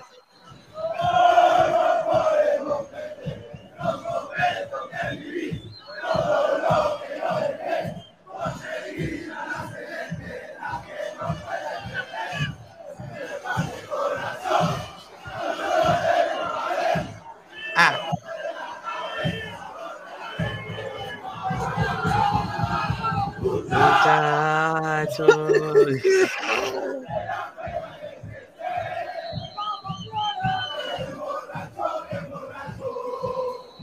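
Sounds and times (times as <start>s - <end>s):
football fans chanting a song in unison: 0.0s - 33.8s
drum beats: 0.4s - 33.8s
laughter: 17.8s - 18.2s, 23.7s - 27.2s.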